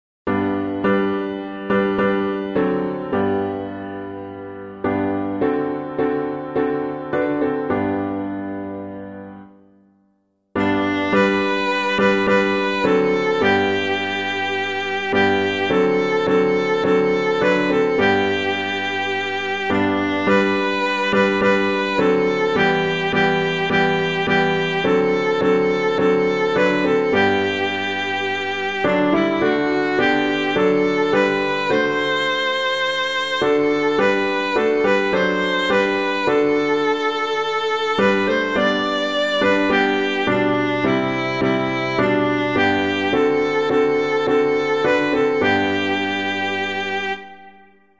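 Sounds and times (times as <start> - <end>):
piano: 0.3 - 47.9.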